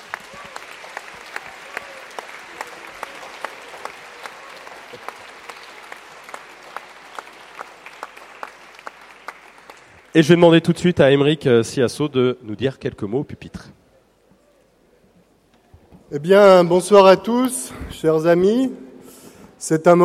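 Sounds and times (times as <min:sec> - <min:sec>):
audience applause at the Utopiales: 0:00.0 - 0:10.3
speech: 0:10.2 - 0:13.7, 0:16.1 - 0:18.8, 0:19.6 - 0:20.0.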